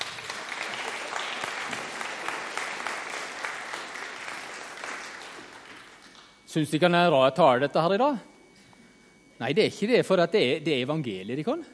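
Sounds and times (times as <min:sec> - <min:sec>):
audience applause: 0:00.0 - 0:06.2
speech: 0:06.5 - 0:08.3, 0:09.4 - 0:11.7.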